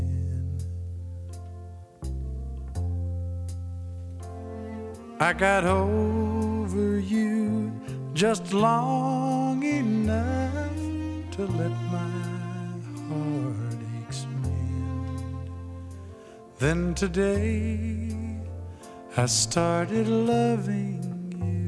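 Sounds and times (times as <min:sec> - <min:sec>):
country music: 0:00.0 - 0:21.6.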